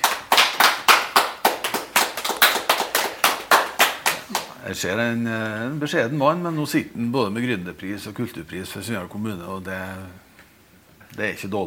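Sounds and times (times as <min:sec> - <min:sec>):
audience clapping: 0:00.0 - 0:04.6
speech: 0:04.6 - 0:10.2, 0:11.1 - 0:11.6.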